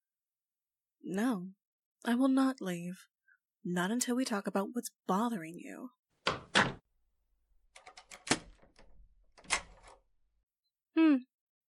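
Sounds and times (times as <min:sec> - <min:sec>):
speech: 0:01.1 - 0:06.4, 0:11.0 - 0:11.3
door lock clacking: 0:06.2 - 0:06.8, 0:07.8 - 0:10.0
lock rattling and jiggling: 0:07.8 - 0:10.1.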